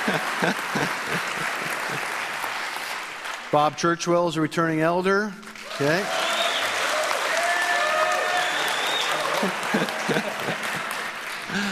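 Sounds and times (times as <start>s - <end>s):
laughter: 0.0s - 2.4s, 9.1s - 11.7s
audience applause: 0.0s - 3.6s, 5.6s - 11.7s
speech: 0.1s - 2.2s, 3.5s - 6.2s.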